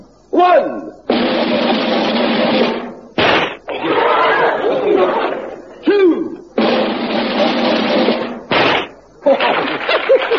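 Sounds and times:
speech: 0:00.4 - 0:01.6
dense crowd noise: 0:01.0 - 0:10.3
gunshot fired at a table tennis ball thrown in the air: 0:01.1 - 0:03.7, 0:06.6 - 0:09.0
laughter: 0:03.7 - 0:05.8, 0:07.2 - 0:08.2, 0:09.0 - 0:10.3.

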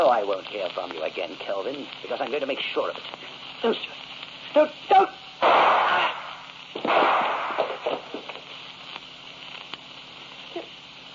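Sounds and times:
crackles and pops: 0:00.0 - 0:11.1
speech: 0:00.2 - 0:05.2
gunshot sound effect in an old radio murder drama: 0:05.4 - 0:08.3.

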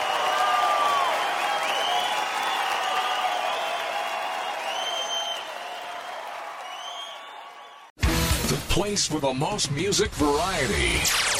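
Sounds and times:
audience applause at a Lisa Lampanelli comedy show in Santa Rosa: 0:00.0 - 0:07.9
speech: 0:08.5 - 0:11.3.

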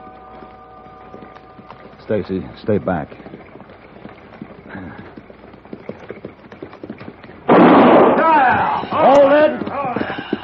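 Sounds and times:
rhythmic clopping: 0:00.0 - 0:10.4
speech: 0:02.1 - 0:03.3
gunshot fired into the air beside a buckboard: 0:07.5 - 0:08.8.

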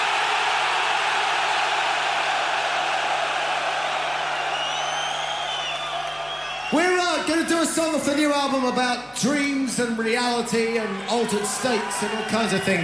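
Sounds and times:
stadium crowd of metal fans screaming: 0:00.0 - 0:07.9, 0:10.1 - 0:12.8
high whistles: 0:04.3 - 0:06.9
speech: 0:06.7 - 0:12.8.

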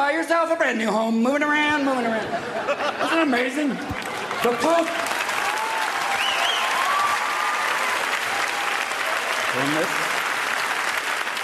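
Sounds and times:
speech: 0:00.2 - 0:05.2, 0:09.6 - 0:10.1
laughter: 0:02.0 - 0:04.9
live audience applauding: 0:03.9 - 0:11.4
whistles and cheers: 0:05.2 - 0:09.8.

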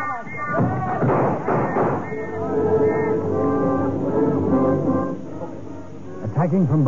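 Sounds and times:
clamour of raised voices and shouting: 0:00.0 - 0:04.9
barred doors being smashed in: 0:00.6 - 0:02.1
speech: 0:06.4 - 0:06.8.

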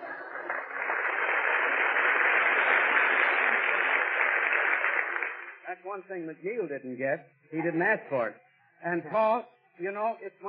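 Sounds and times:
studio audience applauding: 0:00.0 - 0:05.8
speech: 0:05.8 - 0:10.4.

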